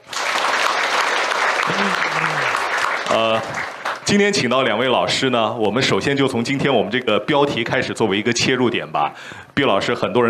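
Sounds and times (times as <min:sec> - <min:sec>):
audience applause: 0:00.0 - 0:04.4
speech: 0:01.7 - 0:02.3, 0:03.1 - 0:10.2.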